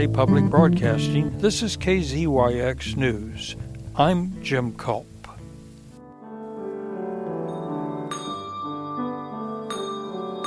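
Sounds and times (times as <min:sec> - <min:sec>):
speech: 0:00.0 - 0:05.1
bells of St. Michael of All Angels Episcopal Church in Fort Bragg ringing: 0:07.5 - 0:10.4.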